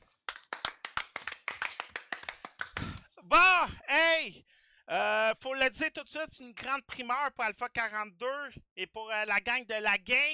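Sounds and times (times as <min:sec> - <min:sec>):
hand clapping: 0:00.0 - 0:03.1
speech: 0:03.3 - 0:10.3.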